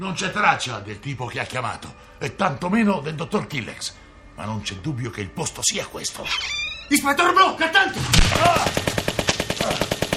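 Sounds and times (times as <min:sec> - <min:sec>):
speech: 0:00.0 - 0:09.0
rapid gunfire: 0:08.0 - 0:10.1.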